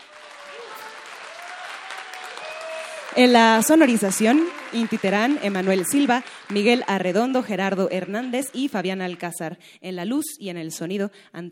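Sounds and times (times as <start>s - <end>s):
audience applause: 0.0s - 9.2s
whistles or cheers: 0.1s - 3.2s
speech: 3.1s - 11.5s.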